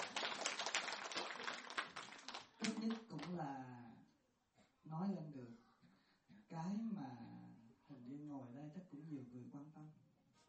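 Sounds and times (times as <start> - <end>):
audience applause: 0.0 - 3.3
speech: 2.8 - 3.9, 4.8 - 5.6, 6.5 - 10.4.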